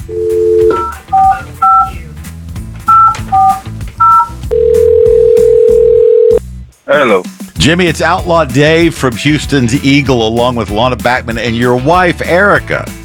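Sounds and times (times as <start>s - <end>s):
telephone dial tone: 0.0s - 1.9s, 2.9s - 6.4s
touch-tone keypad beeps: 0.2s - 2.0s, 2.9s - 4.4s
speech: 6.9s - 13.0s.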